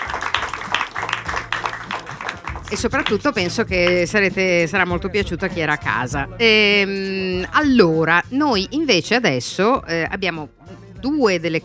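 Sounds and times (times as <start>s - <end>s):
audience cheering: 0.0s - 3.3s
audience applause: 0.0s - 3.5s
speech: 2.7s - 11.6s.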